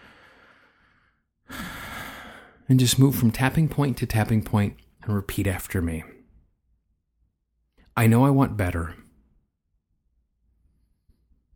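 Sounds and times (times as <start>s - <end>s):
deep breath during a guided tapping exercise: 0.0s - 2.7s
speech: 2.7s - 6.2s, 8.0s - 9.0s.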